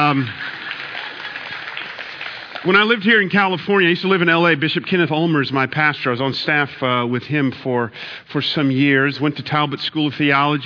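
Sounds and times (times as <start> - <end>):
speech: 0.0 - 0.5, 2.6 - 10.6
people clapping: 0.0 - 3.6.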